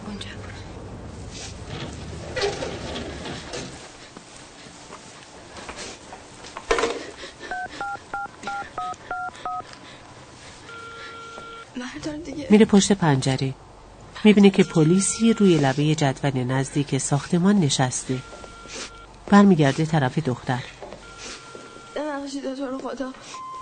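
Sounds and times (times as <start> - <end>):
touch-tone telephone keypad tones in a radio drama: 7.5 - 9.7, 10.7 - 11.7, 18.1 - 19.1, 21.0 - 22.0
speech: 12.0 - 20.7, 22.9 - 23.5.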